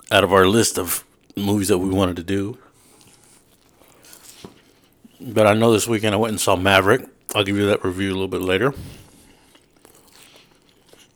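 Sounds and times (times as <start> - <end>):
crunchy chewing of food: 0.0 - 11.1
faint steady hiss: 0.0 - 11.1
speech: 0.1 - 2.6, 5.2 - 9.0.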